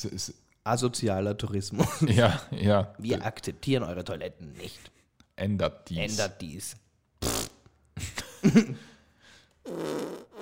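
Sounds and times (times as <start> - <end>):
speech: 0.0 - 7.4, 8.0 - 8.9, 9.6 - 10.4
fart sound effects played from a soundboard: 7.2 - 7.6, 9.6 - 10.4.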